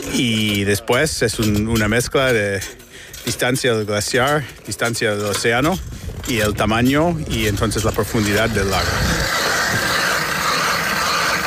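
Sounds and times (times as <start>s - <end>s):
speech: 0.1s - 9.4s
drill boring through the ice layer covering the lake: 6.4s - 11.4s.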